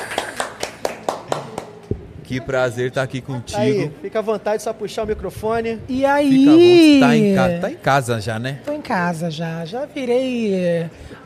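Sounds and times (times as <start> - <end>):
people clapping for arriving guest: 0.0 - 2.1
speech: 2.3 - 11.2.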